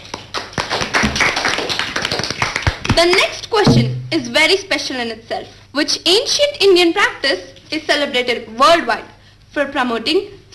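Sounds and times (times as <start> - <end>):
quiz-show audience clapping for a contestant: 0.0 - 3.3
speech: 3.0 - 10.5.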